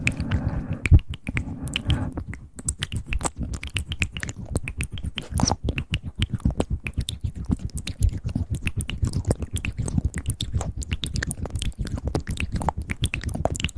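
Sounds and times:
soft low murmur: 0.0s - 2.4s
wet mouth clicks, smacks and pops: 0.0s - 13.7s.

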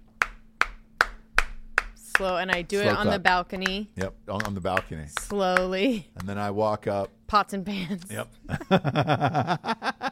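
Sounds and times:
people clapping for the nurses: 0.2s - 7.2s
speech: 2.2s - 9.9s
laughter: 8.5s - 10.1s.

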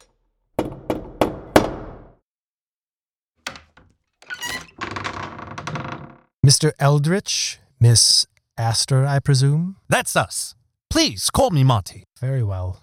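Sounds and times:
knocking on a door: 0.6s - 2.2s
speech: 6.5s - 12.8s.

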